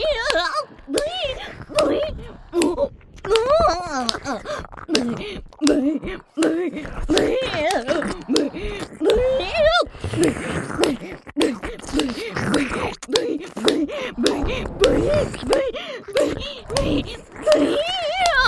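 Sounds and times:
ear licking sounds: 0.1s - 18.4s
person moaning with pig-like voice: 1.2s - 18.4s
slapping sound effect: 4.9s - 9.3s, 10.2s - 18.4s.

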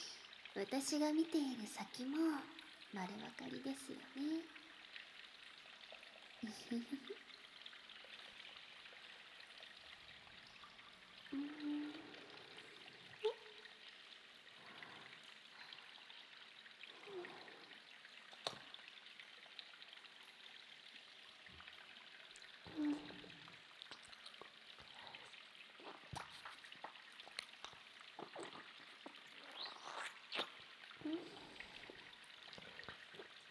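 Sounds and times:
water dripping: 0.0s - 33.4s
ear licking: 22.7s - 33.4s.

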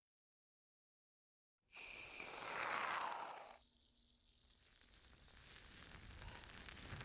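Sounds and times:
shampoo foam bubbles crackling: 1.8s - 7.0s.

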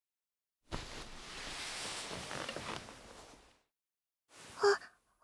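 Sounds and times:
ASMR massage sounds: 0.7s - 3.6s, 4.4s - 4.6s.

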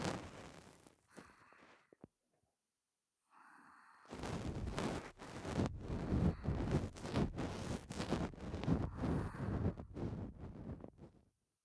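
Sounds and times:
ear cleaning ASMR: 0.0s - 1.8s, 4.1s - 11.1s.

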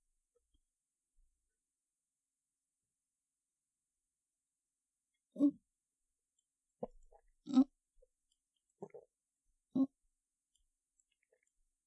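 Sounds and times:
person swallowing two pills with a drink of water: 8.8s - 9.2s.

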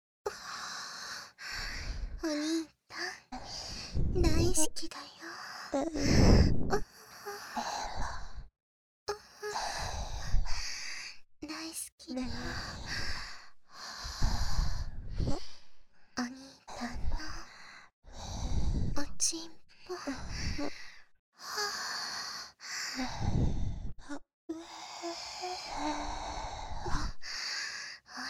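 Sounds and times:
breathy exhales and sighs: 0.3s - 2.4s, 5.3s - 8.5s, 9.5s - 11.2s, 12.2s - 15.7s, 16.3s - 19.2s, 19.8s - 28.2s
speech: 2.2s - 2.7s, 4.2s - 6.9s.

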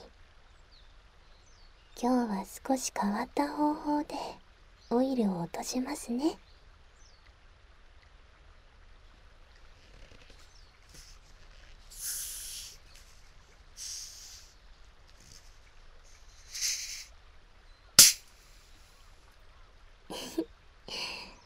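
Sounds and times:
speech: 2.0s - 6.5s
carbonated water fizzing: 9.9s - 17.2s.

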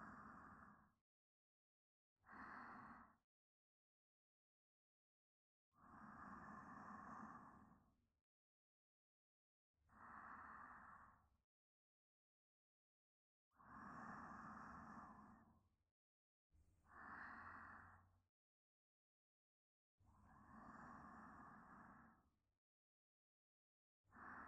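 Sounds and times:
sleep breathing: 0.0s - 0.8s, 2.3s - 3.2s, 5.8s - 7.8s, 10.0s - 11.0s, 13.6s - 15.6s, 16.9s - 18.2s, 20.3s - 22.3s, 24.1s - 24.4s.

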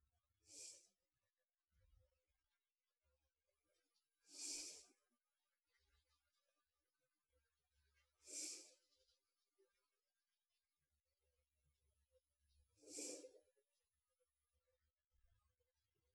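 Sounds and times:
sleeping breath: 0.5s - 1.0s, 4.3s - 5.0s, 8.2s - 8.8s, 12.8s - 13.5s.

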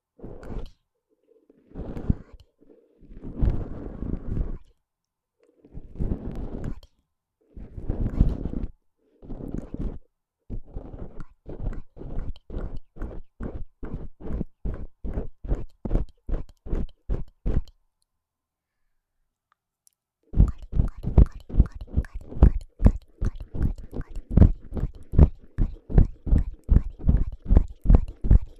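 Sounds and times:
plastic and bamboo ear pick with bonten: 1.5s - 4.7s, 5.7s - 6.8s, 7.6s - 17.7s, 20.4s - 28.5s.

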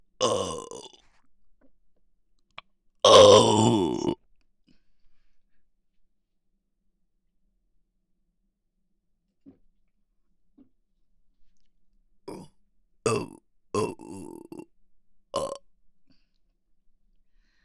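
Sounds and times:
person burping: 0.2s - 1.0s, 3.0s - 4.2s, 12.3s - 12.5s, 13.1s - 14.6s, 15.4s - 15.6s.

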